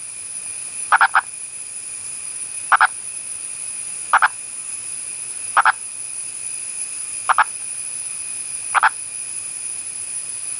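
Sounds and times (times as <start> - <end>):
purple frog of India clucking: 0.9 - 1.3, 2.7 - 2.9, 4.1 - 4.4, 5.6 - 5.8, 7.3 - 7.5, 8.7 - 9.0.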